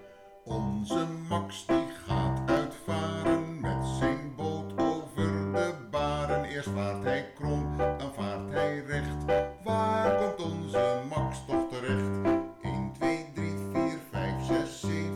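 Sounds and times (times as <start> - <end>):
person singing a song: 0.4 - 15.1.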